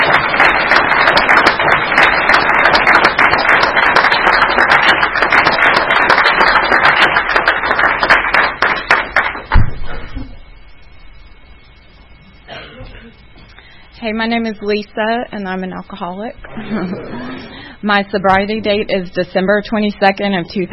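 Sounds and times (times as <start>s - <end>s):
audience applause welcoming a speaker at a New Year's Eve gathering: 0.0s - 9.5s
dull thump: 9.5s - 10.0s
speech: 14.1s - 20.7s
laughter: 16.4s - 17.7s.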